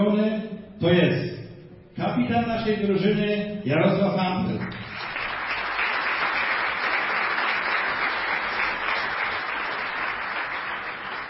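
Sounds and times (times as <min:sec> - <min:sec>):
speech: 0:00.1 - 0:01.4, 0:02.2 - 0:04.8
audience applause: 0:04.6 - 0:11.2.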